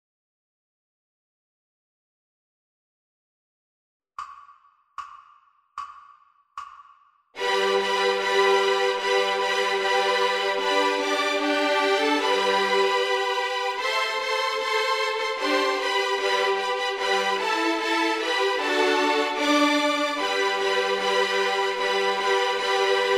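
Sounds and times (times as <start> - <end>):
violin orchestra at 75 bpm: 7.4 - 23.1.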